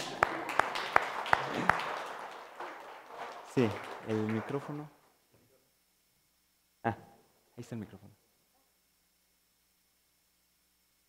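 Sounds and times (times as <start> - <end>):
audience applause: 0.0 - 5.0
speech: 3.6 - 5.0, 6.8 - 7.0, 7.6 - 8.2.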